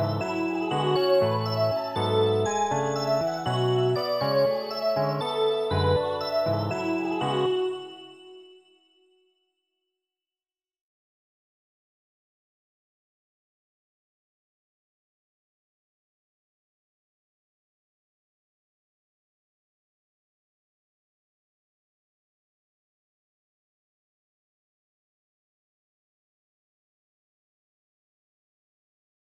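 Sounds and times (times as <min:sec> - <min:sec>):
midi music: 0:00.0 - 0:08.2.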